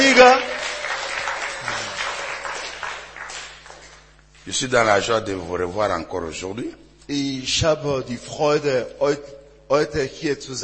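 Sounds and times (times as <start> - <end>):
audience applauding: 0.0 - 4.1
speech: 4.5 - 10.6.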